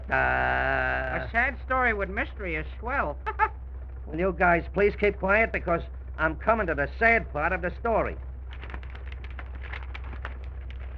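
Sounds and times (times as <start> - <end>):
speech: 0.1 - 0.7, 1.3 - 3.5, 4.1 - 8.3
paper package rattling: 8.4 - 10.9.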